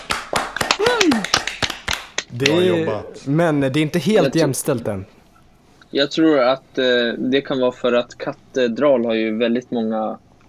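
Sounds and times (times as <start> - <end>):
brisk applause from a few people: 0.0 - 5.0
falling vocal whoop: 0.8 - 1.3
speech: 2.3 - 5.2, 5.9 - 10.2.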